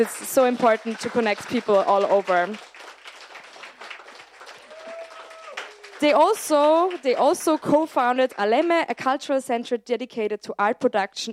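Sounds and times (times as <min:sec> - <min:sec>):
speech: 0:00.0 - 0:02.7, 0:06.0 - 0:11.3
crowd applause: 0:00.0 - 0:08.6.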